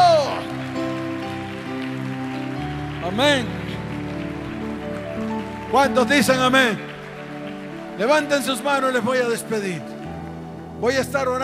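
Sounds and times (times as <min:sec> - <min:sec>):
audience applauding: 0:00.0 - 0:11.4
sustained keyboard chords: 0:00.0 - 0:11.4
speech: 0:03.1 - 0:03.6, 0:05.7 - 0:06.9, 0:08.0 - 0:09.9, 0:10.8 - 0:11.4.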